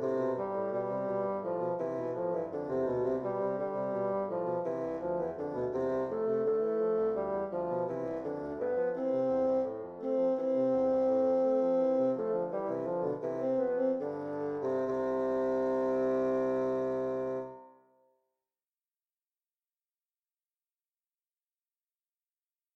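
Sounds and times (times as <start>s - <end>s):
two bassoons playing an air in C major: 0.0s - 17.6s.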